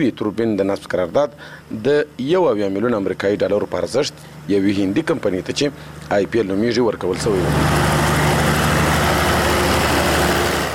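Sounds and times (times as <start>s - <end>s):
speech: 0.0s - 8.0s
diesel machines powering a small ice factory near the Grishk power plant: 2.7s - 10.7s.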